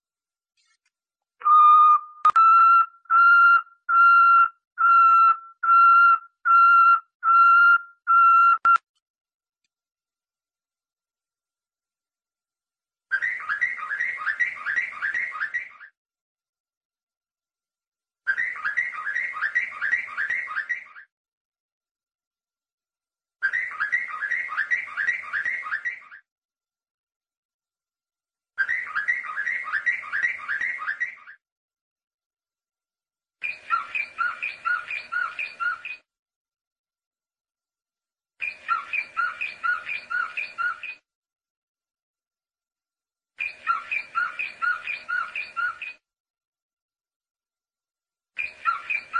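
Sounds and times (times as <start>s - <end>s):
canary trilling song: 1.4s - 8.8s, 13.1s - 16.0s, 18.3s - 21.1s, 23.4s - 26.3s, 28.6s - 31.4s, 33.4s - 36.1s, 38.4s - 41.1s, 43.4s - 46.0s, 48.4s - 49.1s.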